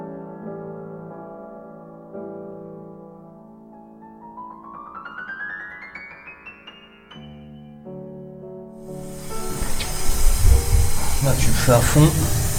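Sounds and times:
fire roaring and hissing: 8.8s - 12.5s
speech: 11.2s - 12.4s.

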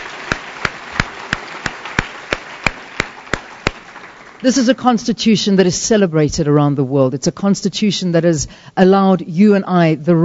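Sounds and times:
audience round of applause: 0.0s - 4.5s
speech: 4.4s - 10.2s.

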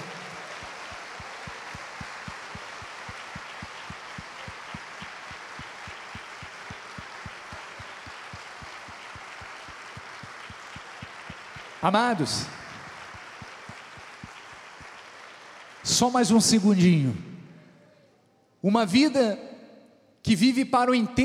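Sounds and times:
large audience applause: 0.0s - 16.7s
speech: 11.8s - 12.6s, 16.0s - 17.3s, 18.6s - 19.5s, 20.3s - 21.2s.

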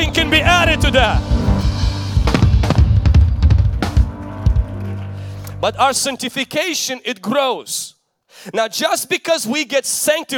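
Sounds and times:
speech: 0.0s - 1.4s, 5.6s - 10.3s
audience clapping: 2.3s - 6.0s.

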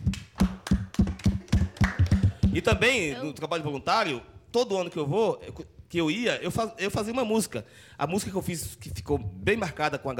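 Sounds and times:
applause: 0.0s - 2.8s
speech: 2.6s - 10.1s.

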